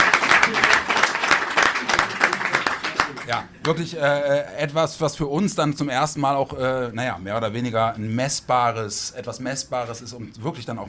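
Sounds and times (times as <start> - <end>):
crowd applause: 0.0 - 3.5
speech: 3.3 - 10.8.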